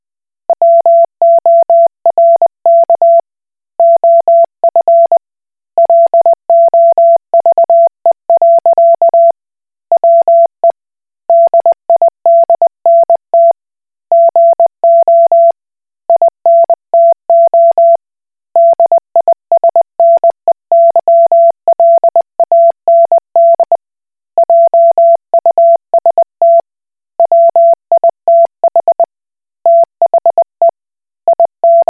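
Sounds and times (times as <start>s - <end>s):
Koch Morse code beeps: 0.5s - 3.2s, 3.8s - 5.2s, 5.8s - 9.3s, 11.3s - 13.5s, 14.1s - 15.5s, 16.1s - 18.0s, 18.6s - 23.8s, 24.4s - 26.6s, 27.2s - 30.7s, 31.3s - 31.8s.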